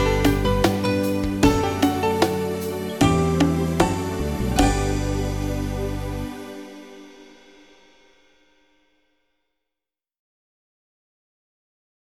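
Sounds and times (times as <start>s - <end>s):
bongos: 0.0s - 8.2s.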